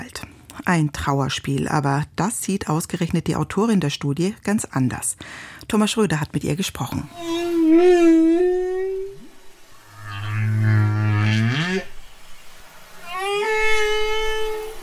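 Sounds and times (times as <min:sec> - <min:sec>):
speech: 0:00.7 - 0:08.2
humpback whale song: 0:07.1 - 0:14.8.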